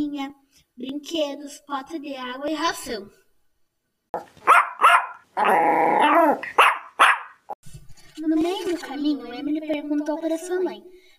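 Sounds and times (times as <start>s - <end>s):
speech: 0.0s - 3.2s, 4.1s - 4.6s, 5.4s - 6.7s, 8.2s - 11.1s
French bulldog barking: 4.2s - 7.5s
French bulldog rough growling whine: 5.4s - 6.5s.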